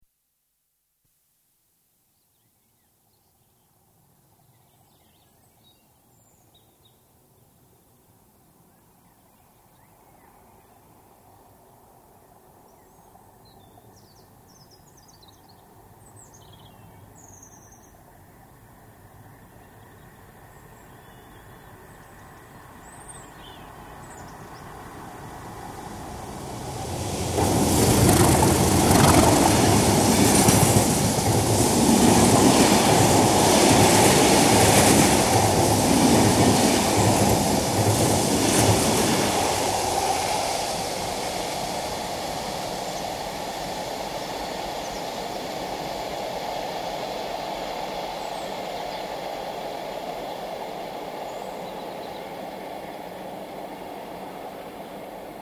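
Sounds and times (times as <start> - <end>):
diesel goods train emerging from tunnel: 24.7 - 55.3.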